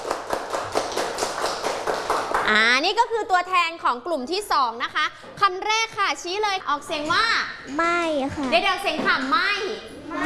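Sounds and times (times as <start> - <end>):
children clapping hands: 0.0 - 2.6
speech: 2.5 - 10.2.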